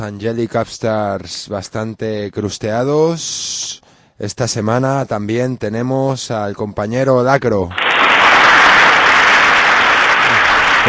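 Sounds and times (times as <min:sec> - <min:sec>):
speech: 0:00.0 - 0:07.9
audience clapping: 0:07.7 - 0:10.8.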